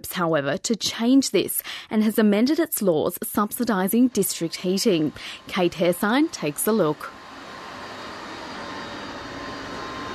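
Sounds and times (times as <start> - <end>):
speech: 0.1 - 7.2
faint high whine: 3.2 - 10.1
oil refinery steel pipes hissing and steaming: 4.2 - 7.3.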